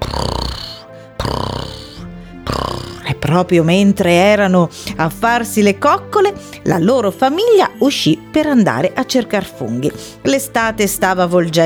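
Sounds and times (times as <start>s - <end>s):
voice imitating a cat purring: 0.0s - 4.4s
speech: 3.3s - 11.6s.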